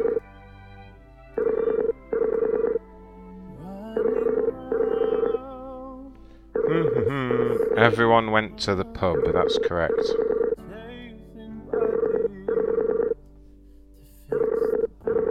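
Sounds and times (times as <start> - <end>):
Skype call ringing tone: 0.0 - 0.2, 1.4 - 2.8, 4.0 - 5.4, 7.6 - 10.6, 11.7 - 13.2, 14.3 - 15.2
speech: 7.9 - 10.4.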